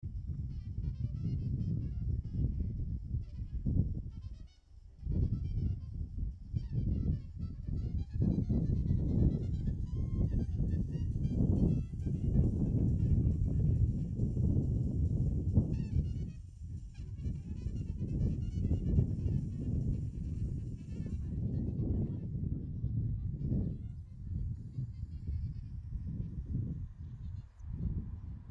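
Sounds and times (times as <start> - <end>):
wind: 0.0 - 28.5.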